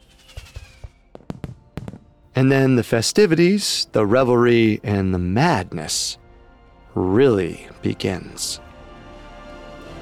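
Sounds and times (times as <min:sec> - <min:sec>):
fireworks going off with thumps and crackling bangs: 0:00.0 - 0:02.3
speech: 0:02.4 - 0:06.2, 0:07.0 - 0:08.7.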